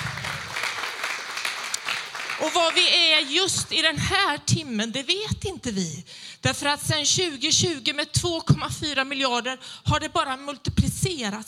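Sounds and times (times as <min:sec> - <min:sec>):
audience applause: 0:00.0 - 0:02.8
speech: 0:02.4 - 0:11.4.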